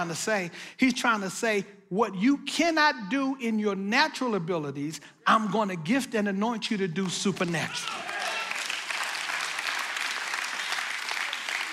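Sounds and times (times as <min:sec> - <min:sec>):
speech: 0:00.0 - 0:08.1
audience clapping: 0:07.0 - 0:11.7.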